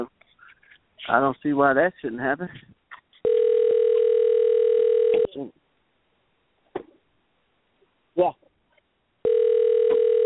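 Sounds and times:
speech: 0:01.1 - 0:02.7, 0:05.4 - 0:05.6, 0:08.2 - 0:08.4
telephone dial tone on an unanswered call: 0:03.2 - 0:05.3, 0:09.2 - 0:10.2.

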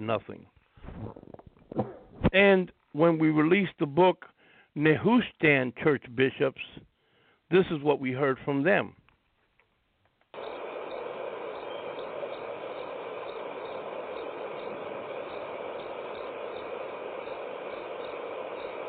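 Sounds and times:
speech: 0:00.0 - 0:06.9, 0:07.5 - 0:09.0
crickets chirping: 0:10.4 - 0:18.8.

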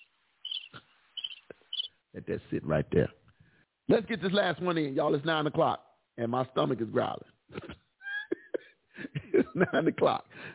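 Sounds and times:
crickets chirping: 0:00.0 - 0:02.0
speech: 0:02.2 - 0:03.2, 0:03.9 - 0:07.6, 0:09.6 - 0:10.3
laughter: 0:07.5 - 0:10.2.

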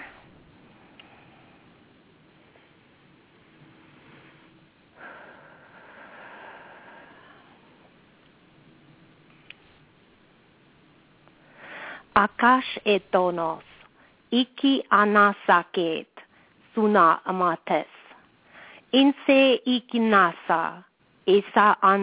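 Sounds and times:
person's slow breath in: 0:05.0 - 0:07.9, 0:11.5 - 0:12.1, 0:18.4 - 0:18.9
speech: 0:12.2 - 0:13.7, 0:14.3 - 0:16.1, 0:16.8 - 0:17.9, 0:18.9 - 0:22.0.

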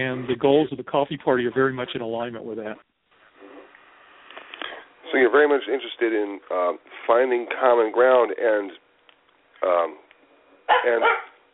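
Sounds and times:
speech: 0:00.0 - 0:02.9, 0:05.1 - 0:08.8, 0:09.6 - 0:10.0, 0:10.7 - 0:11.3
dog barking: 0:10.7 - 0:11.4.

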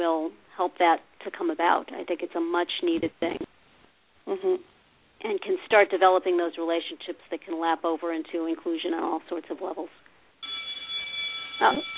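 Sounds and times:
speech: 0:00.0 - 0:03.6, 0:04.2 - 0:10.1, 0:11.6 - 0:11.9
electronic school bell ringing: 0:10.4 - 0:11.9.

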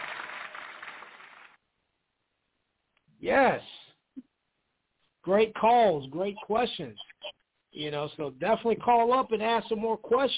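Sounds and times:
applause clapping: 0:00.0 - 0:01.6
speech: 0:03.2 - 0:04.3, 0:05.2 - 0:07.0, 0:07.8 - 0:10.3.

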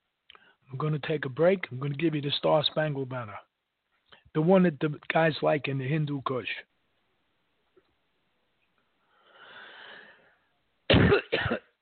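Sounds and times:
speech: 0:00.7 - 0:03.5, 0:04.4 - 0:06.7
person coughing: 0:10.9 - 0:11.7.

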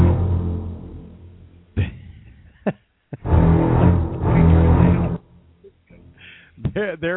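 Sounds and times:
thunder sound effect rumbling: 0:00.0 - 0:01.6, 0:03.2 - 0:05.3.

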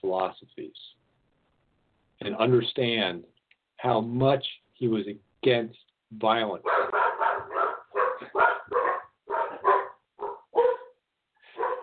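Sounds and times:
speech: 0:00.0 - 0:01.0, 0:02.2 - 0:07.0
poodles barking: 0:06.6 - 0:11.8.

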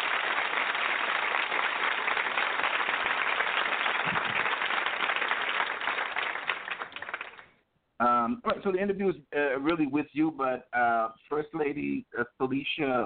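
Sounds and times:
hand claps: 0:00.0 - 0:07.6
speech: 0:08.3 - 0:13.0.

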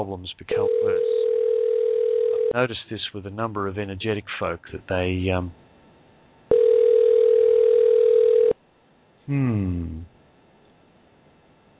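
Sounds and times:
speech: 0:00.0 - 0:01.2, 0:02.5 - 0:05.6, 0:09.3 - 0:10.1
telephone dial tone: 0:00.6 - 0:02.5, 0:06.5 - 0:08.6.

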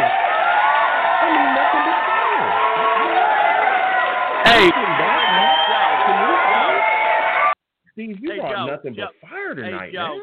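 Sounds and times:
crowd cheering and applause: 0:00.0 - 0:07.6
speech: 0:08.7 - 0:10.2.

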